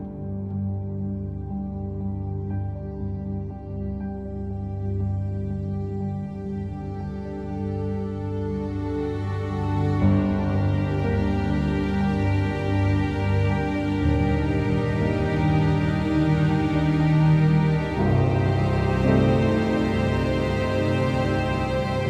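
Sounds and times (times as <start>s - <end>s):
piano: 0.0s - 22.0s
strings: 0.0s - 22.0s.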